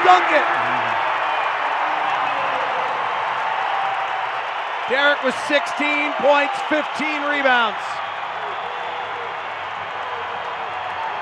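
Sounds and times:
arena crowd cheering and applauding: 0.0 - 11.2
speech: 4.9 - 8.0.

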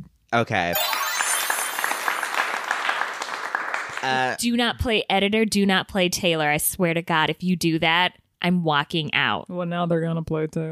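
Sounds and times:
speech: 0.3 - 1.0, 4.0 - 10.7
applause sound effect: 0.8 - 4.4.

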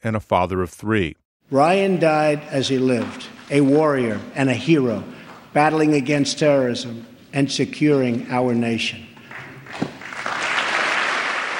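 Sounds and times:
speech: 0.0 - 9.1
members of Congress applauding during President Trump's speech: 9.3 - 11.5.

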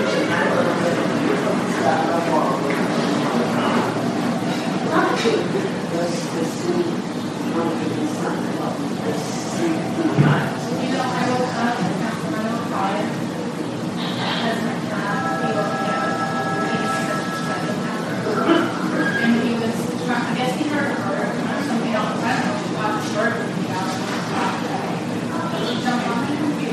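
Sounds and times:
many voices talking in a hospital emergency room: 0.0 - 26.7
held electronic tone: 15.0 - 19.4.

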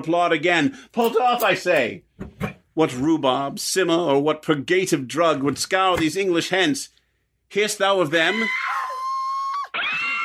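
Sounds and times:
speech: 0.0 - 2.1, 2.8 - 8.8
women crying out in high-pitched wails: 8.3 - 10.2.

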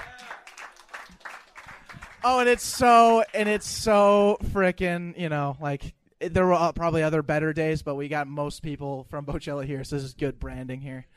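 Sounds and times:
audience round of applause: 0.0 - 3.7
speech: 2.2 - 11.1.

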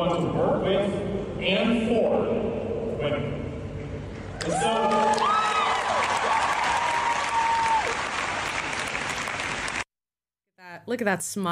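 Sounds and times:
speech: 0.0 - 3.5, 4.4 - 5.4, 10.9 - 11.5
crowd of supportive allies applauding: 4.4 - 9.9.

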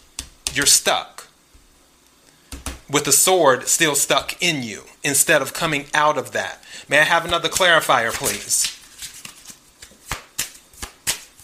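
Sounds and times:
speech: 0.6 - 1.2, 2.9 - 8.8
tarot cards being shuffled: 7.2 - 11.4.

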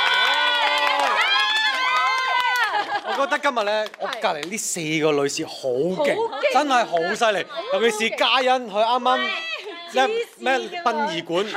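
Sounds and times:
audience cheering: 0.0 - 3.4
audience applause: 0.0 - 4.5
laughter: 2.4 - 3.8, 6.0 - 8.5, 9.1 - 10.3
speech: 3.2 - 11.5.

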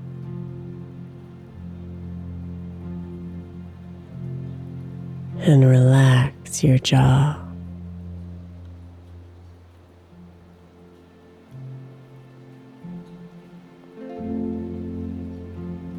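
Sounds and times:
gentle rain falling outside: 0.0 - 6.3, 6.9 - 15.9
low sustained ambient drone: 0.0 - 15.9
speech: 5.4 - 7.4.

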